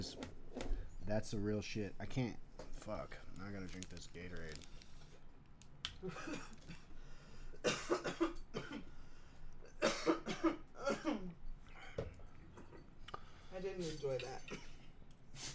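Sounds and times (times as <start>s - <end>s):
speech: 0.0s - 0.2s, 1.1s - 4.8s, 6.0s - 6.8s, 10.4s - 11.4s, 13.6s - 14.7s
person coughing: 6.0s - 6.9s, 7.6s - 8.9s, 9.7s - 11.4s, 14.5s - 14.8s.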